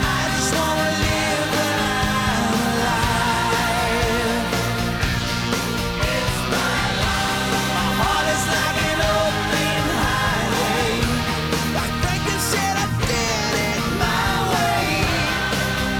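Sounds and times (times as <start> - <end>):
music loop: 0.0 - 15.9.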